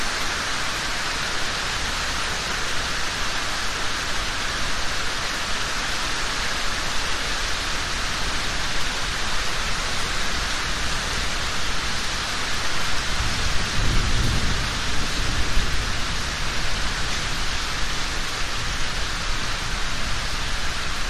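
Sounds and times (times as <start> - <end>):
rain in a yard: 0.0 - 21.0
thunder: 13.3 - 16.9.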